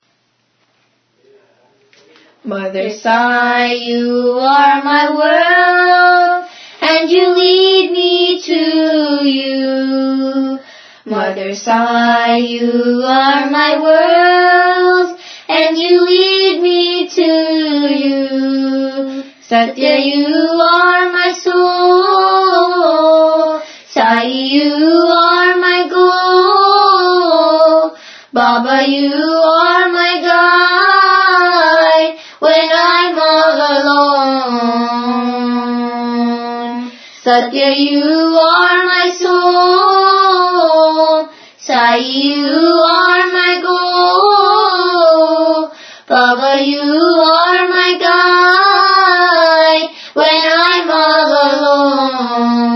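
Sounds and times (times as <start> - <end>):
bhajan devotional song: 2.0 - 52.7.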